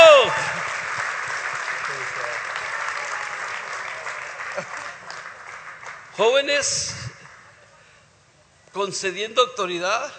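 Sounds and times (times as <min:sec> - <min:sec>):
audience applause: 0:00.0 - 0:06.4
speech: 0:06.2 - 0:07.1, 0:08.7 - 0:10.1.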